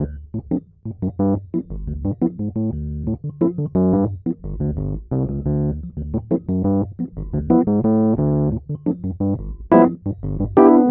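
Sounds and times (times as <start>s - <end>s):
electric piano: 0.0s - 4.8s, 5.4s - 10.8s.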